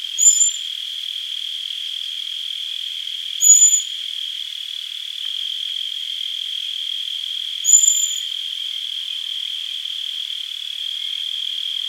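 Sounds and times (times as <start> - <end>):
loud insect drone: 0.0 - 11.8
Common blackbird high calls: 0.2 - 0.6, 3.4 - 3.9, 7.7 - 8.2.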